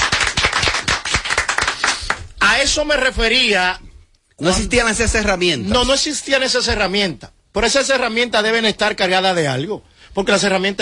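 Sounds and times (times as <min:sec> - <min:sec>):
audience applause: 0:00.0 - 0:02.2
speech: 0:02.6 - 0:03.8, 0:04.4 - 0:10.7.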